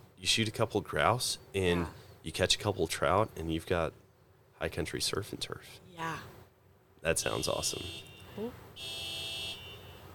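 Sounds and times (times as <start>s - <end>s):
speech: 0.2s - 4.0s, 4.6s - 6.3s, 7.0s - 9.0s
car alarm going off: 7.3s - 10.1s.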